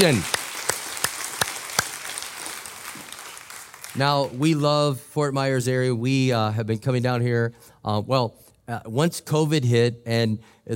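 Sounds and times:
speech: 0.0 - 0.4, 4.0 - 10.7
audience clapping: 0.0 - 4.7.

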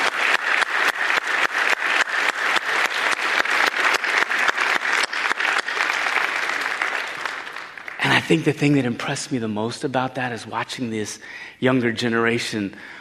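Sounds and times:
audience applause: 0.0 - 8.9
speech: 8.3 - 12.9.

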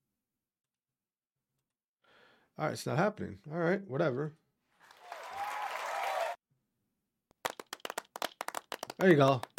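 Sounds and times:
speech: 2.6 - 4.4, 9.0 - 9.5
audience clapping: 4.8 - 6.4, 7.4 - 9.5.

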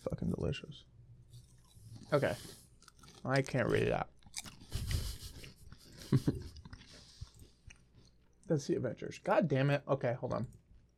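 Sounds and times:
speech: 0.2 - 1.0, 2.1 - 2.6, 3.2 - 4.2, 8.5 - 10.6
person crunching and chewing snacks: 1.2 - 8.5.

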